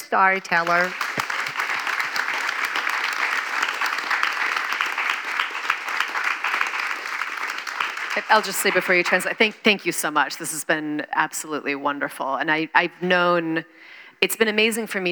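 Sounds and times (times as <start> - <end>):
audience applause: 0.0 - 9.4
speech: 0.1 - 1.0, 8.2 - 15.0.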